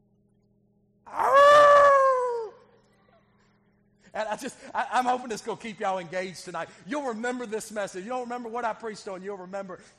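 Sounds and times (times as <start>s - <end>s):
man's voice imitating a wolf's howl: 1.1s - 2.6s
speech: 4.3s - 9.9s.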